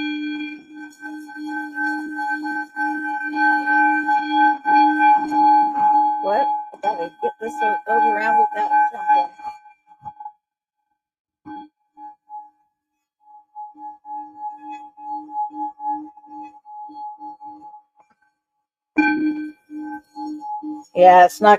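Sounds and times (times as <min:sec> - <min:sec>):
singing bowl being struck and rung: 0:00.0 - 0:09.7, 0:13.4 - 0:17.9, 0:19.0 - 0:21.5
speech: 0:07.5 - 0:08.7, 0:21.0 - 0:21.5.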